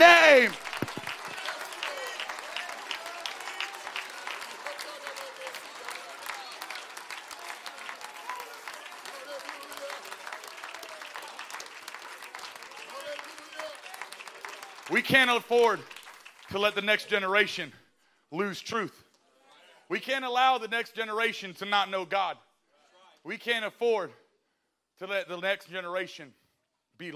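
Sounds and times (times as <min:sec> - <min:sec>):
audience clapping: 0:00.0 - 0:17.0
speech: 0:15.0 - 0:19.0, 0:19.9 - 0:22.5, 0:23.2 - 0:24.2, 0:25.0 - 0:26.4, 0:27.0 - 0:27.1.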